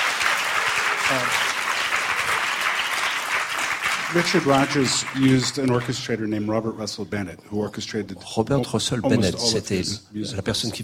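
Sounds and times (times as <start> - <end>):
audience applause: 0.0 - 6.0
speech: 1.1 - 1.4, 4.1 - 10.8.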